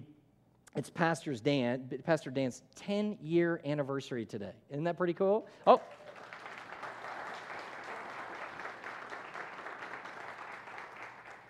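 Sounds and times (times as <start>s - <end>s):
speech: 0.8s - 6.0s
church audience applause: 5.8s - 11.4s.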